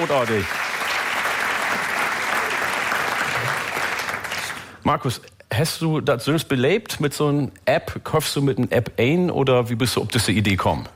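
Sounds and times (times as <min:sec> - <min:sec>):
speech: 0:00.0 - 0:00.6, 0:04.8 - 0:10.9
audience clapping: 0:00.0 - 0:04.8.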